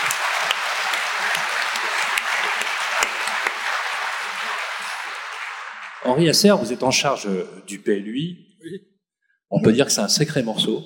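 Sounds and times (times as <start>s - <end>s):
audience applause: 0.0s - 6.8s
speech: 6.1s - 8.9s, 9.5s - 10.8s.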